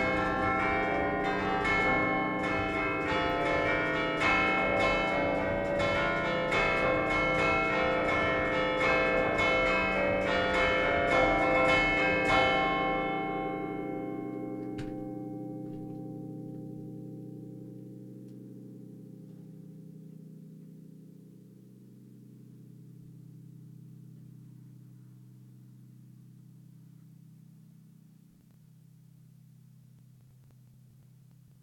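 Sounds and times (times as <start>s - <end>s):
San Cipriano church bells in Liguria Genova: 0.0s - 24.8s.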